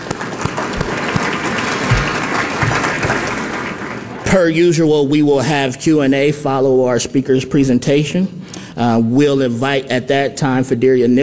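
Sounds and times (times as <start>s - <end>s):
audience applause: 0.0s - 4.2s
speech: 4.3s - 11.2s.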